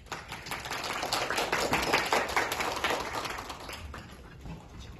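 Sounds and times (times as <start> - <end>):
audience applause: 0.0 - 4.4.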